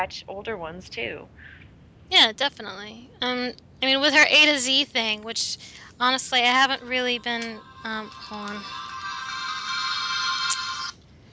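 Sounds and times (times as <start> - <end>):
speech: 0.0 - 8.9
mobile phone ringtone playing a video game melody: 6.8 - 10.9.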